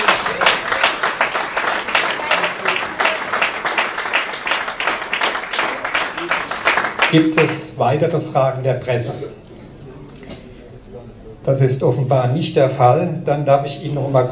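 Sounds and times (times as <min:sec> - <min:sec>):
applause: 0:00.0 - 0:07.8
speech: 0:07.1 - 0:09.4, 0:11.4 - 0:14.2.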